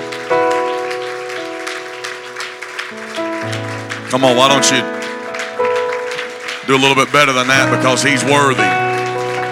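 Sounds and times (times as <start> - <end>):
audience hand clapping: 0.0 - 9.5
speech: 4.1 - 5.0, 6.7 - 8.8.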